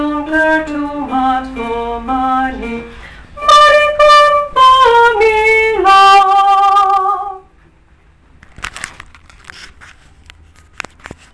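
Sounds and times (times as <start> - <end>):
soprano voices singing: 0.0 - 7.4.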